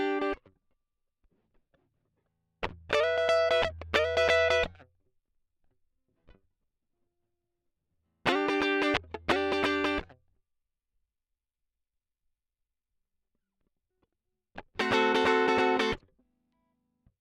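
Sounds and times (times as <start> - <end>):
guitar solo line: 0.0 - 0.4, 2.9 - 4.7, 8.3 - 10.0, 14.8 - 16.0.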